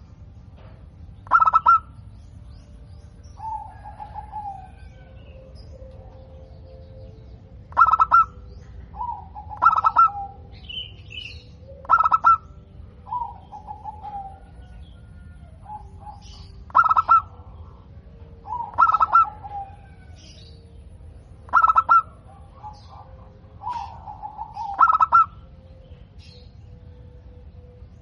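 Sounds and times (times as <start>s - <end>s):
steady low background noise: 0.0s - 27.9s
zebra dove cooing: 1.2s - 2.0s, 3.3s - 6.9s, 7.6s - 20.4s, 21.4s - 26.0s
faint higher chirps from another bird: 1.2s - 27.9s.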